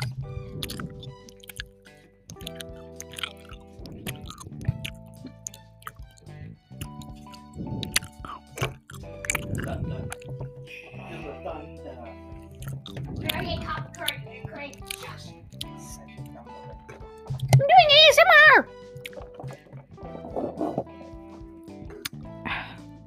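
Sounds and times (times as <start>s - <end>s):
wet squishy chewing of gummy candy: 0.0s - 11.0s, 12.4s - 17.6s, 19.0s - 19.7s, 21.8s - 22.3s
soft music: 0.0s - 23.0s.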